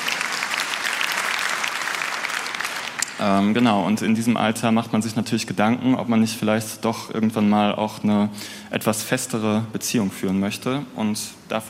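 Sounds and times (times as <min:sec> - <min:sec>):
crowd applause: 0:00.0 - 0:03.2
speech: 0:03.2 - 0:11.6.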